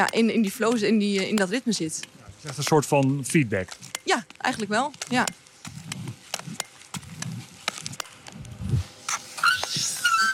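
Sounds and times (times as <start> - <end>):
speech: 0.0 - 5.4
speed skates scraping across ice: 3.6 - 10.3.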